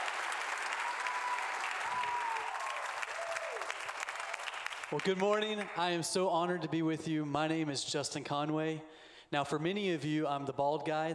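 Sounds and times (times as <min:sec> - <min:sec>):
audience applause welcoming speakers onto a stage: 0:00.0 - 0:05.8
speech: 0:04.9 - 0:11.1.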